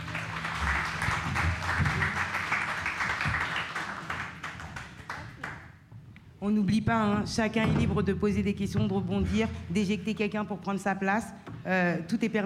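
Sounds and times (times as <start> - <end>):
room full of people applauding panel guests: 0.0 - 5.7
speech: 6.4 - 12.4.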